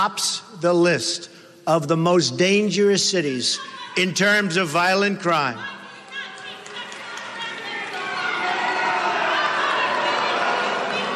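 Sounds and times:
speech: 0.0s - 5.8s
crowd of protesters yelling together: 5.6s - 11.1s.

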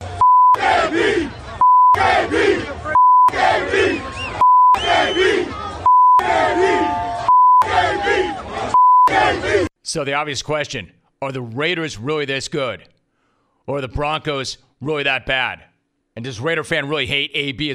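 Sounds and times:
huge stadium crowd chanting: 0.1s - 9.7s
flat steady censor bleep tone: 0.2s - 0.6s, 1.6s - 2.0s, 3.0s - 3.3s, 4.4s - 4.9s, 5.9s - 6.2s, 7.3s - 7.7s, 8.8s - 9.1s
speech: 9.9s - 13.0s, 13.6s - 17.7s.

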